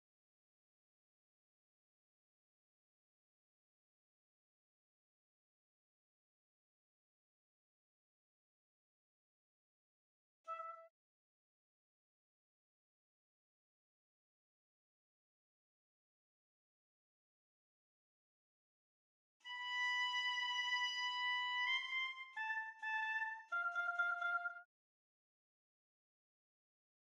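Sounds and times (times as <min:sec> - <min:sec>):
oboe: 0:10.5 - 0:10.9, 0:19.4 - 0:24.7.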